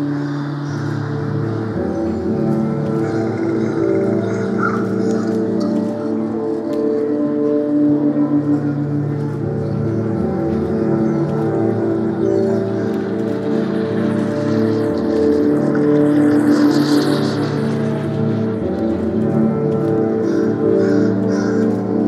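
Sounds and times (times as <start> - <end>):
luminous soundscape: 0.0 - 22.0.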